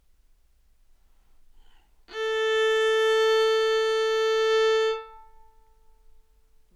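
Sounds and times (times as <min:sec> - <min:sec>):
modern viola open A string in an anechoic room: 0:02.1 - 0:05.7.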